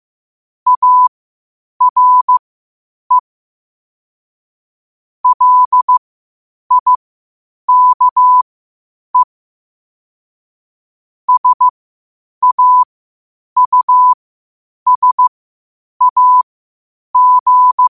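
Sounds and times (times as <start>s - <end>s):
morse code at 5 wpm: 0.7s - 1.1s, 1.8s - 2.4s, 5.2s - 6.0s, 6.7s - 7.0s, 7.7s - 8.4s, 11.3s - 11.7s, 12.4s - 12.9s, 13.6s - 14.2s, 14.9s - 15.3s, 16.0s - 16.4s, 17.2s - 17.8s.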